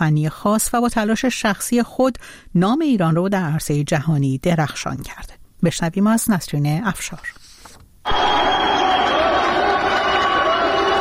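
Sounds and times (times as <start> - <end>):
speech: 0.0 - 7.4, 8.0 - 8.5
crowd cheering and applauding: 8.1 - 10.9.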